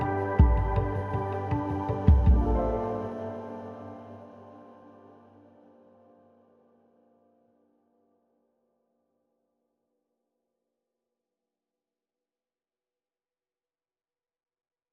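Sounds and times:
forest fight section music: 0.0 - 3.0.

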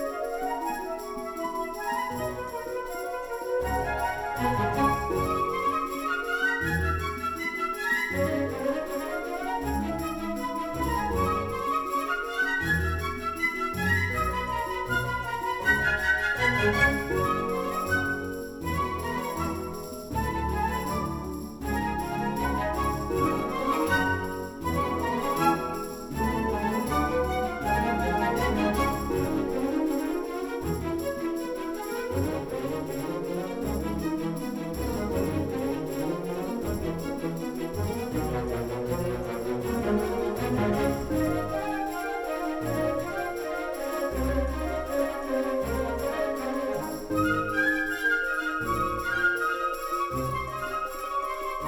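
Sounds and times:
joyful music loop: 0.2 - 51.6.

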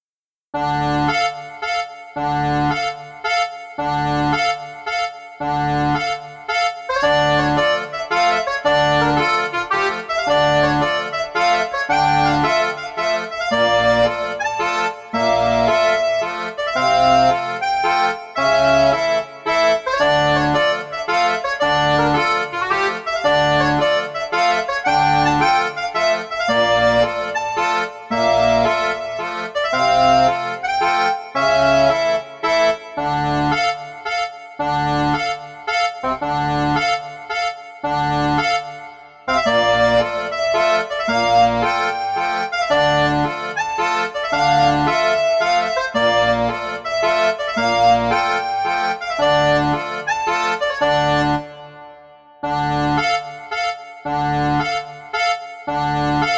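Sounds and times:
accordion: 0.6 - 56.3.

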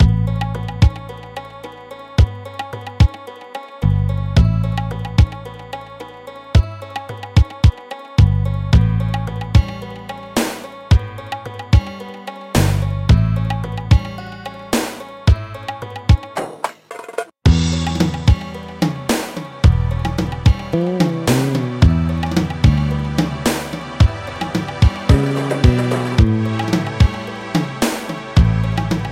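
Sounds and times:
desert music: 0.0 - 29.0.

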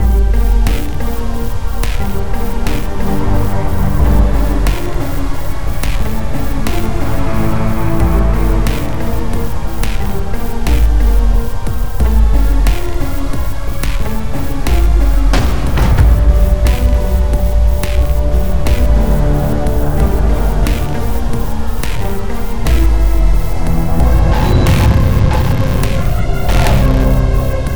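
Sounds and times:
desert exploring music: 0.0 - 27.7.

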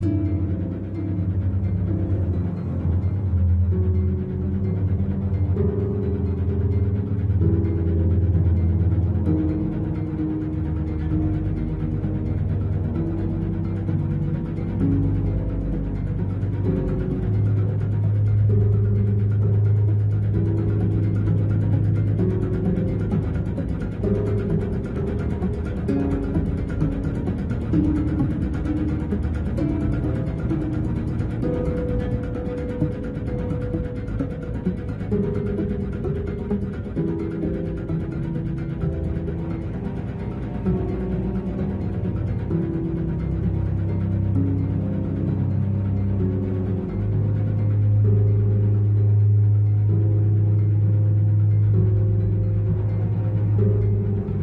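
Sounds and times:
stealth music loop: 0.0 - 54.4.

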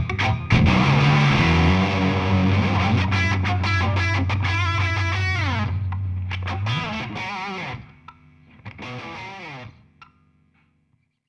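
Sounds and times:
bass in video game music: 0.0 - 8.8
guitars in video game music: 0.0 - 10.6.

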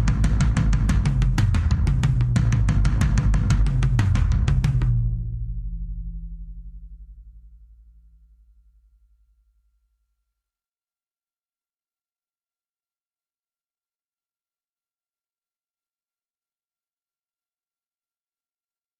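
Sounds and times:
drums: 0.0 - 8.0.

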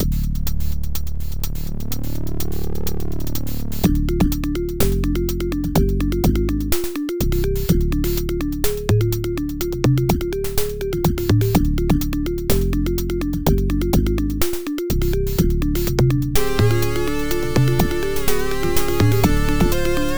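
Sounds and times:
arcade game music loop: 0.0 - 20.1.

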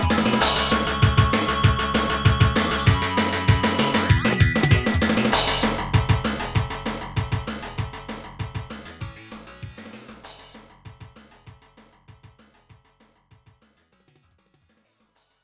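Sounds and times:
stage background music: 0.0 - 10.4.

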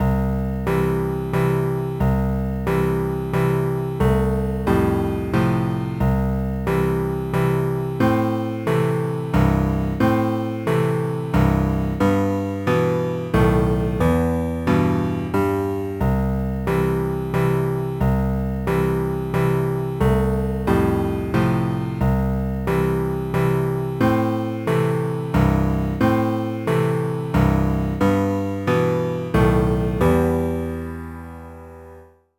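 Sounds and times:
background piano music: 0.0 - 32.3.

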